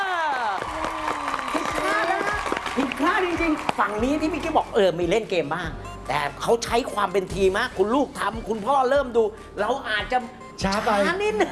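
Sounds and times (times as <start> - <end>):
clapping: 0.3 - 4.5
speech: 3.2 - 11.5.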